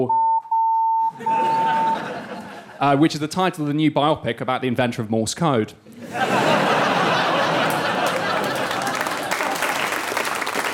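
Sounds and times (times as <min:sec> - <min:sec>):
speech: 0:00.0 - 0:00.2, 0:02.8 - 0:06.8
censor bleep over a spoken title: 0:00.0 - 0:02.0
laughter: 0:01.1 - 0:03.0, 0:05.9 - 0:10.5.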